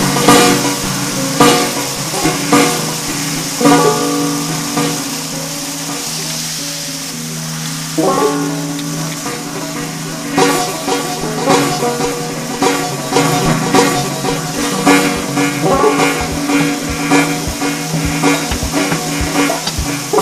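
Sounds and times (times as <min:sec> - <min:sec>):
banjo: 0:00.0 - 0:20.2
guitar: 0:00.0 - 0:20.2
rain: 0:00.0 - 0:20.2.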